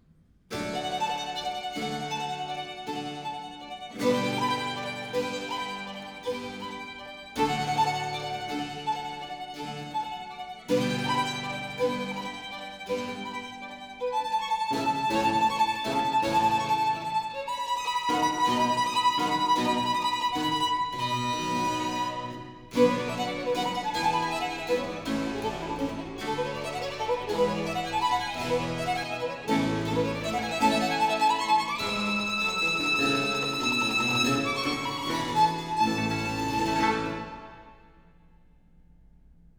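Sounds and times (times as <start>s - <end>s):
violin sonata with continuo: 0.5s - 38.0s.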